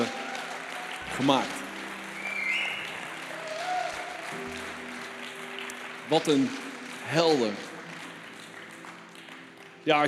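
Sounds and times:
faint cheering: 0:00.0 - 0:05.0
crowd applause: 0:00.0 - 0:10.0
speech: 0:01.2 - 0:01.6, 0:06.1 - 0:07.7, 0:09.8 - 0:10.0.

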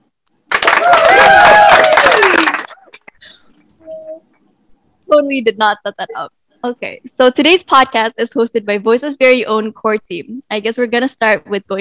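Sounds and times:
cheering and applause: 0:00.5 - 0:02.9
speech: 0:05.2 - 0:11.7.

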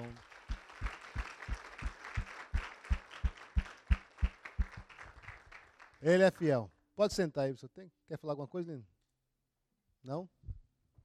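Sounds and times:
audience applauding: 0:00.0 - 0:06.4
speech: 0:06.0 - 0:08.9, 0:10.0 - 0:10.4.

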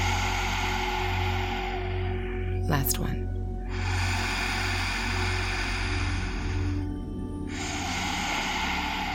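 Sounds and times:
person breathing during guided Kapalabhati breathing: 0:00.0 - 0:02.6, 0:03.4 - 0:09.1
speech: 0:02.7 - 0:03.4.

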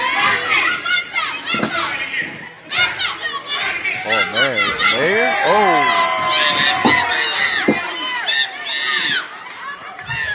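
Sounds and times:
large crowd cheering and shouting: 0:00.0 - 0:10.3
dull thumps: 0:06.5 - 0:07.9.

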